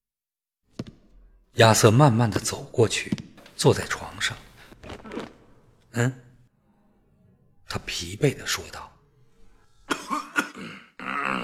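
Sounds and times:
speech: 0:01.6 - 0:04.4, 0:06.0 - 0:06.2, 0:07.7 - 0:08.9
person clearing throat: 0:09.9 - 0:11.4
person coughing: 0:09.9 - 0:11.4.

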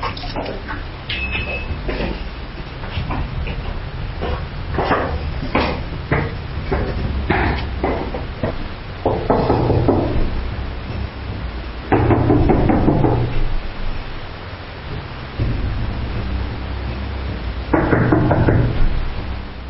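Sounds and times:
low rumbling background: 0:00.0 - 0:19.6
rapid heavy knocking on a door: 0:04.1 - 0:13.7, 0:15.4 - 0:16.7, 0:17.6 - 0:19.4.

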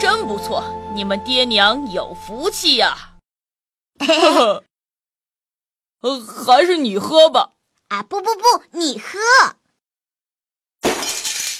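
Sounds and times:
speech: 0:00.1 - 0:03.1, 0:04.0 - 0:04.7, 0:06.0 - 0:09.6
ceramic bowl shattering: 0:10.8 - 0:11.5.

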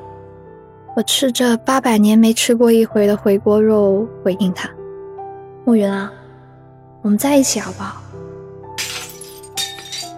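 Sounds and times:
speech: 0:01.0 - 0:04.8, 0:05.6 - 0:06.2, 0:07.0 - 0:08.2
coffee cup shattering: 0:08.8 - 0:10.1.

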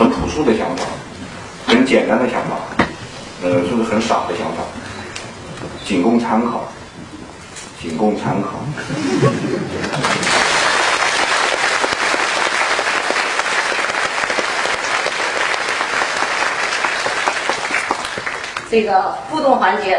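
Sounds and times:
speech: 0:00.0 - 0:01.0, 0:01.7 - 0:02.8, 0:03.4 - 0:04.8, 0:05.9 - 0:06.8, 0:07.8 - 0:10.4, 0:18.7 - 0:19.9
laughter: 0:08.8 - 0:10.8
audience applause: 0:09.7 - 0:18.7.

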